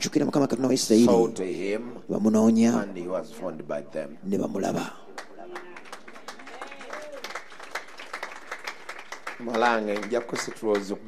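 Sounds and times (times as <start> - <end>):
speech: 0.0 - 5.0, 9.4 - 11.0
audience clapping hands: 4.8 - 11.0.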